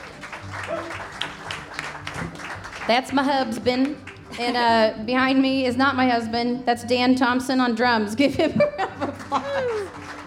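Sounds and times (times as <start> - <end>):
faint audience applause for a guitarist at a live show: 0.0 - 4.4, 9.1 - 10.2
speech: 2.2 - 8.8
laughter: 8.2 - 10.1.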